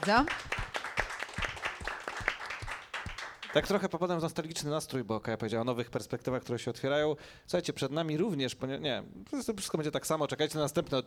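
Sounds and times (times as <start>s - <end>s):
speech: 0.0s - 0.6s, 3.6s - 11.0s
audience applause: 0.0s - 3.7s.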